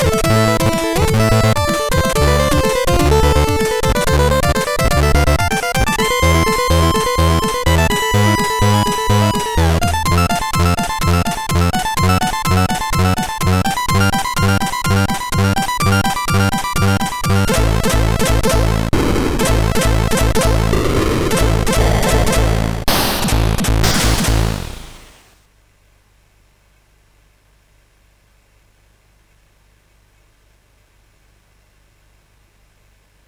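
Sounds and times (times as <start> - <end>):
MOS6581R3 chip tune: 0.0 - 25.3.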